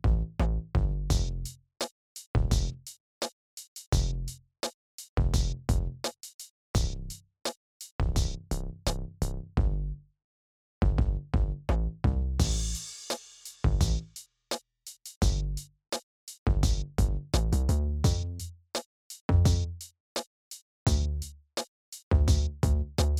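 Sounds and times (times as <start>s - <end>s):
unequalized rhythm bass: 0.0s - 1.6s, 2.4s - 2.9s, 3.9s - 4.4s, 5.2s - 6.1s, 6.8s - 7.2s, 8.0s - 9.9s, 10.8s - 13.0s, 13.6s - 14.2s, 15.2s - 15.7s, 16.5s - 18.5s, 19.3s - 19.9s, 20.9s - 21.3s, 22.1s - 23.1s.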